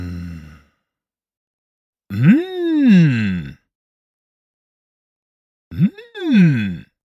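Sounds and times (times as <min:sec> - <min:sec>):
man saying mmm expressing pleasure of food: 0:02.1 - 0:03.6, 0:05.7 - 0:06.9.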